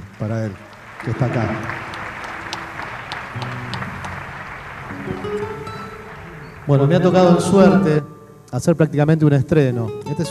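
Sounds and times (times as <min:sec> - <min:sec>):
audience applause: 0:00.0 - 0:07.8
speech: 0:00.2 - 0:01.9, 0:03.4 - 0:03.8, 0:05.0 - 0:05.8, 0:06.6 - 0:10.3.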